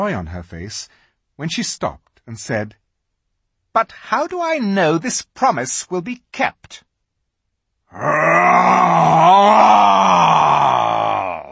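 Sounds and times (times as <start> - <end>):
speech: 0.0 - 2.8, 3.7 - 6.9, 7.9 - 9.9
person voicing a lion's roar: 7.9 - 11.5.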